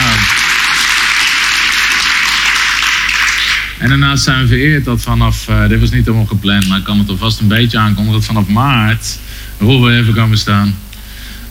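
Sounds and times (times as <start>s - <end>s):
audience applause: 0.0s - 3.8s
speech: 3.8s - 10.8s.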